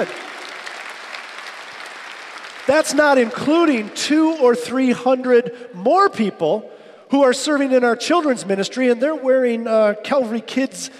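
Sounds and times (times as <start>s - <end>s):
speech: 0.0s - 0.2s, 2.6s - 10.9s
audience clapping: 0.0s - 4.7s.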